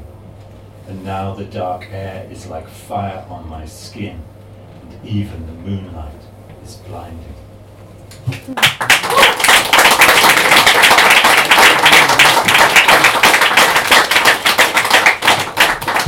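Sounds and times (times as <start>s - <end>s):
speech: 0.9s - 4.4s, 5.0s - 7.4s, 8.2s - 9.0s
audience applause between poems: 8.5s - 16.0s.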